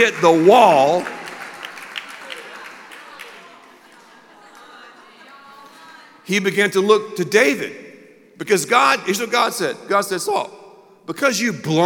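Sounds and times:
speech: 0.0 - 1.2, 6.3 - 7.8, 8.4 - 11.8
audience applause: 0.0 - 5.0.

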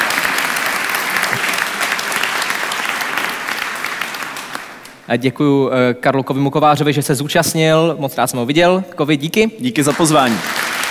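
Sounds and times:
audience applause: 0.0 - 5.0, 9.8 - 10.9
speech: 5.1 - 10.7.

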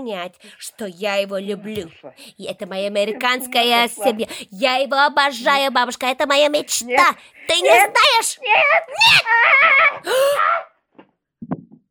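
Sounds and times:
speech: 0.0 - 10.7
horrible primal scream: 8.4 - 10.8.

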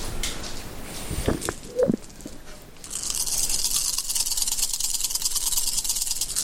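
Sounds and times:
dice being rolled: 1.4 - 6.4.

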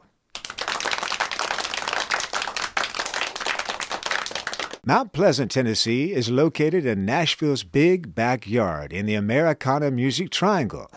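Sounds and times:
crowd applause: 0.4 - 4.8
speech: 4.9 - 10.9.

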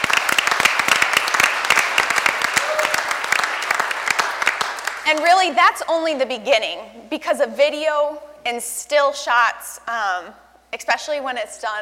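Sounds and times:
crowd applauding: 0.0 - 5.2
speech: 5.1 - 11.8.

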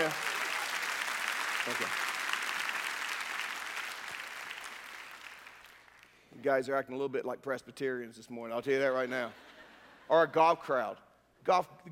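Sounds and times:
audience applause: 0.0 - 6.2
speech: 1.7 - 2.0, 6.4 - 9.5, 10.1 - 11.8.

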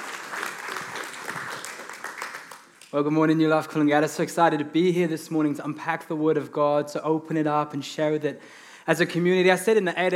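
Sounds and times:
church congregation applauding at a morning service: 0.0 - 3.1
speech: 2.9 - 10.1.

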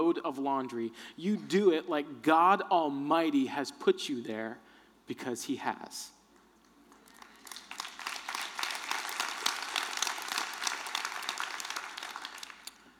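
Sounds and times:
speech: 0.0 - 6.2
audience clapping: 6.4 - 12.9.

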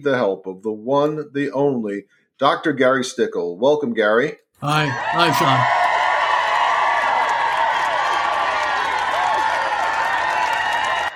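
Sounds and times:
speech: 0.0 - 5.8
audience applause: 4.6 - 11.1.

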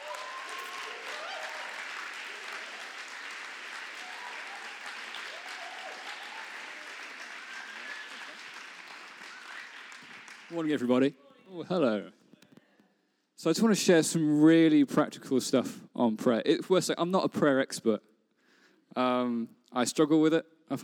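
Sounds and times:
audience applauding to welcome a speaker: 0.0 - 11.0
speech: 10.5 - 12.2, 13.4 - 18.1, 18.9 - 20.8.

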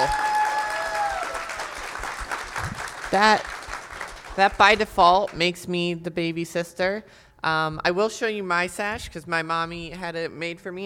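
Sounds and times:
applause: 0.0 - 4.8
speech: 3.1 - 3.6, 4.4 - 10.8.

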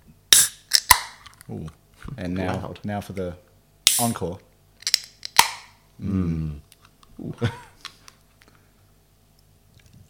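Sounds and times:
7% beer being cracked open: 0.3 - 1.4, 4.8 - 5.7
speech: 1.5 - 4.5, 6.0 - 7.7.

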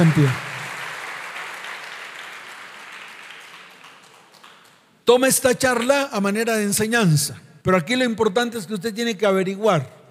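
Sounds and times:
speech: 0.0 - 0.5, 5.1 - 10.0
audience applause: 0.0 - 4.9.

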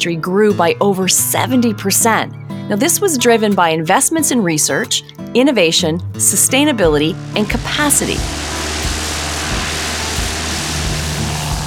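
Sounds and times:
speech: 0.0 - 8.7
propeller airplane flying from Vancouver Island to the interior of British Columbia: 6.8 - 11.6.

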